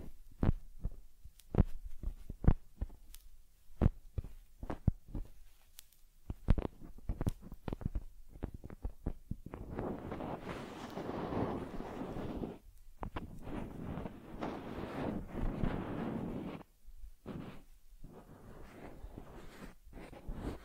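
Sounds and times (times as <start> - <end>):
sharp taps and soft thumps on a teddy bear: 0.0 - 10.2, 13.0 - 14.6
scratchy rubbing or combing of a teddy bear: 0.0 - 20.6.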